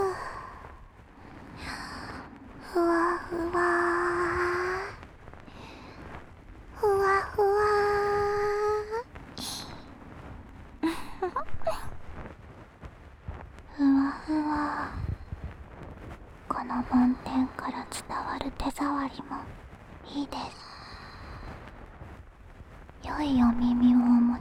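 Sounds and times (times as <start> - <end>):
person whispering in both ears: 2.6 - 6.0, 6.8 - 9.9, 13.7 - 15.3, 16.5 - 19.4, 20.0 - 21.5, 23.0 - 24.3.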